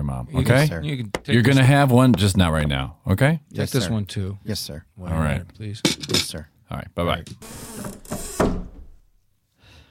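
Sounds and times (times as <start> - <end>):
speech: 0.2 - 8.6
door being locked: 7.4 - 9.1.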